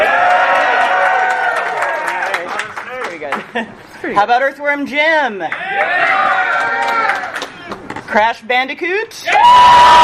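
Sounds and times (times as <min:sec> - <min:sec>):
crowd whooping and cheering: 0:00.0 - 0:02.6, 0:05.6 - 0:07.4, 0:09.2 - 0:10.0
speech: 0:03.6 - 0:06.4, 0:08.1 - 0:10.0.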